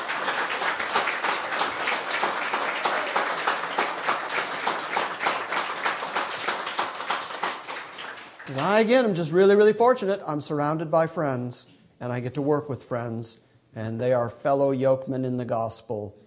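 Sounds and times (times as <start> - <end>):
audience round of applause: 0.0 - 9.0
speech: 8.5 - 16.2.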